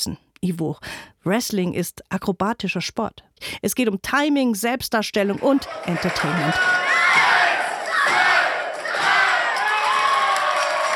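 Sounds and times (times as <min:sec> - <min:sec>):
speech: 0:00.0 - 0:07.3
wrestling crowd counting: 0:05.2 - 0:10.9.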